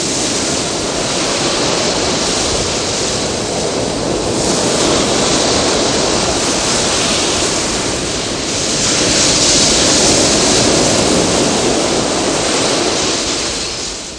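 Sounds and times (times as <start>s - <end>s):
sea: 0.0s - 14.1s.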